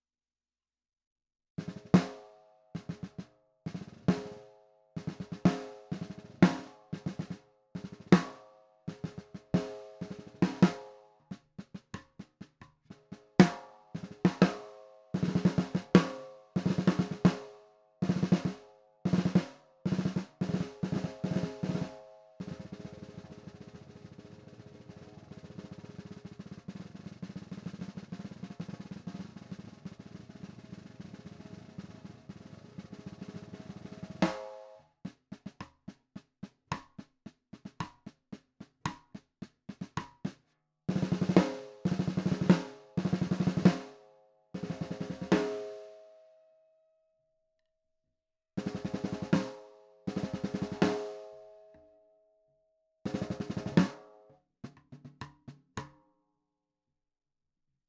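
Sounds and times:
low-tuned designer snare drum: 1.6 - 45.9, 48.6 - 51.4, 53.1 - 56.0.

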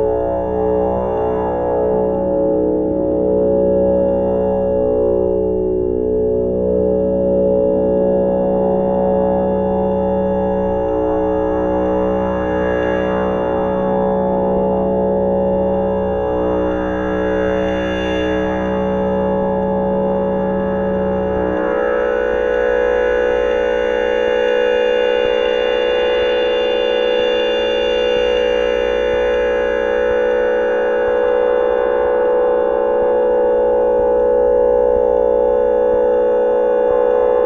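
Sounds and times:
drone: 0.0 - 37.4.

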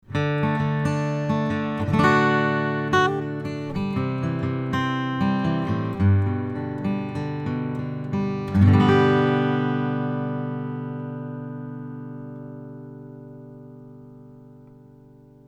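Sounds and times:
guitar picking through a cardioid microphone: 0.0 - 15.4.

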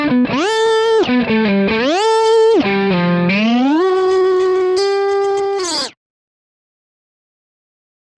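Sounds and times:
Stratocaster overdrive through Whammy pedal: 0.0 - 6.0.

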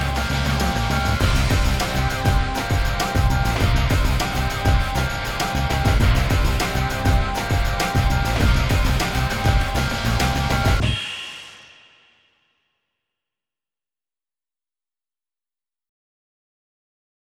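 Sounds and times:
cinematic rock music: 0.0 - 11.4.

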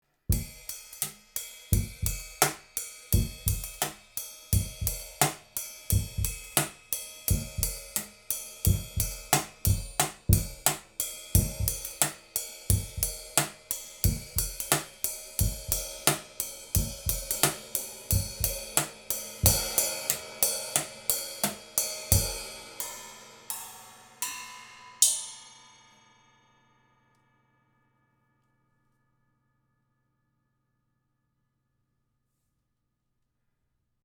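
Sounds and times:
drums: 0.3 - 25.8.

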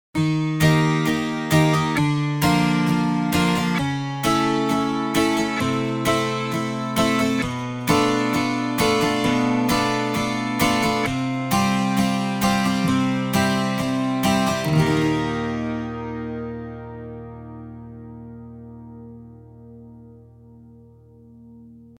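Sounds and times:
strummed acoustic 12 string guitar: 0.2 - 21.9.

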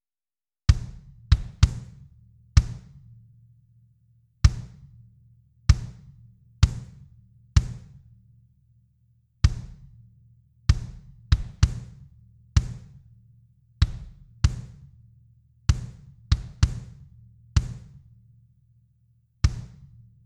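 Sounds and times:
kick drum with slow to fast attack: 0.7 - 3.1, 4.4 - 5.0, 5.7 - 8.2, 9.4 - 10.0, 10.7 - 13.2, 13.8 - 14.9, 15.7 - 18.1, 19.4 - 20.2.

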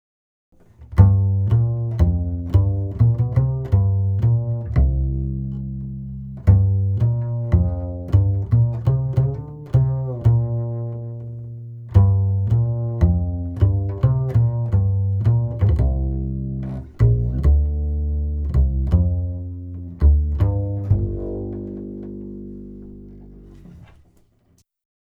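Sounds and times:
slow upright bass comping: 0.7 - 24.2.

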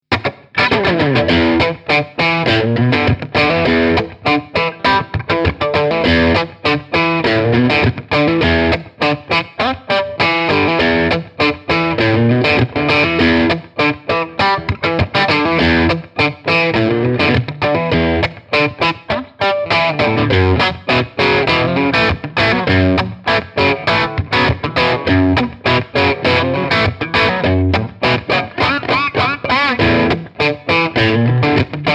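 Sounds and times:
Strat guitar crunch through Harley Benton Tube 15 amp: 0.1 - 31.9.

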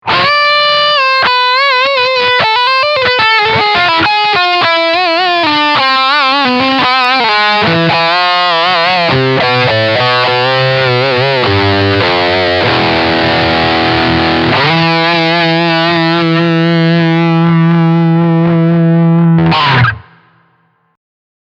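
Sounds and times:
high gain electric guitar lick on bridge pickup: 0.0 - 20.9.

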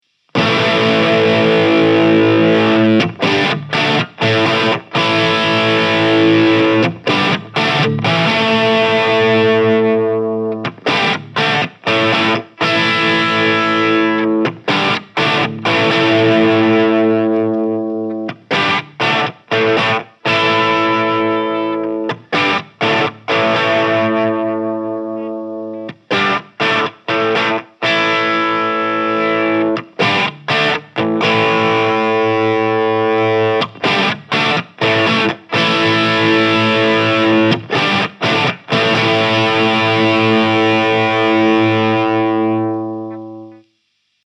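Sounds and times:
electric guitar through Engl R606 Ironball head crunch channel: 0.0 - 44.2.

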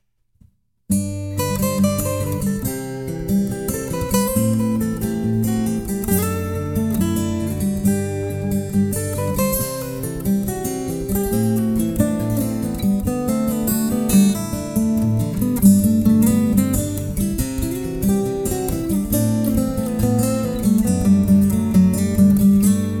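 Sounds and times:
acoustic duo playing: 1.0 - 22.9.

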